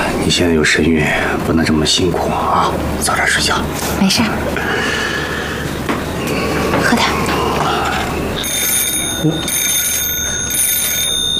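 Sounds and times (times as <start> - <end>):
low hum: 0.0 - 11.3
speech: 0.2 - 5.2, 9.2 - 9.6
telephone ringing: 8.0 - 11.3.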